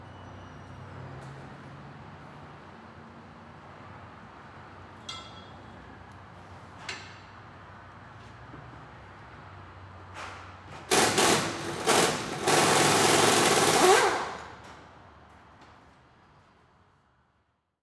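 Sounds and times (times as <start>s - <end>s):
auto repair shop industry ambience: 5.0s - 16.1s.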